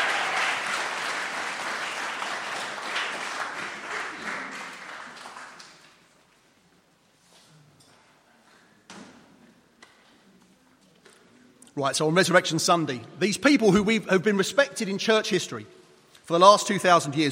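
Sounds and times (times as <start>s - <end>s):
audience applause: 0.0s - 6.0s
speech: 11.8s - 17.3s.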